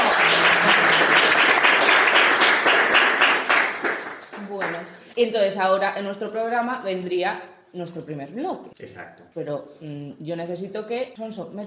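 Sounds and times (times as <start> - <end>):
crowd applause: 0.0 - 4.8
speech: 5.2 - 11.6.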